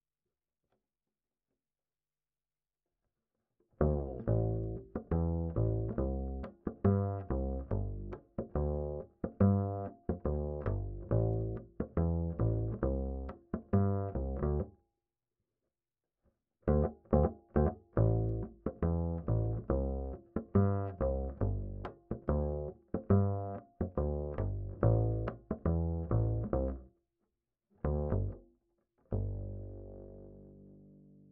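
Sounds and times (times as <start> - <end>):
bass line: 3.8 - 14.7, 16.7 - 26.9, 27.8 - 28.4, 29.1 - 31.2.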